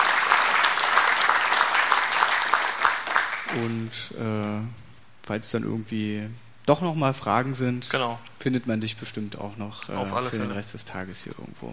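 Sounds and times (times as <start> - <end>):
audience applause: 0.0 - 3.8
speech: 3.6 - 11.7.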